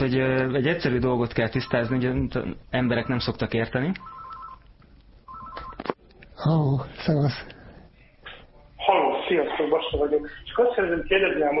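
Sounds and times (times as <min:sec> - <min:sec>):
speech: 0:00.0 - 0:04.2, 0:05.8 - 0:07.6, 0:08.8 - 0:11.5
telephone ringing for an incoming call to a radio studio: 0:01.6 - 0:02.2, 0:04.0 - 0:04.6, 0:05.2 - 0:05.9.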